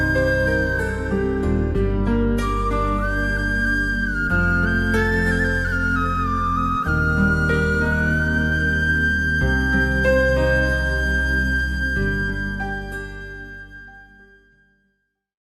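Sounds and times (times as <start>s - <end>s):
sad flute tone and flute melodies: 0.0s - 14.8s.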